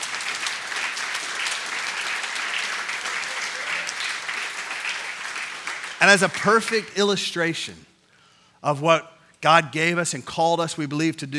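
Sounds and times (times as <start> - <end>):
audience clapping: 0.0 - 7.0
speech: 6.0 - 7.9, 8.6 - 11.3.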